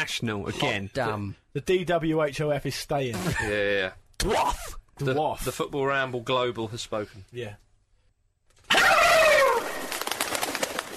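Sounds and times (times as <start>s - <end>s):
speech: 0.0s - 7.6s
turkeys gobbling: 8.7s - 9.8s.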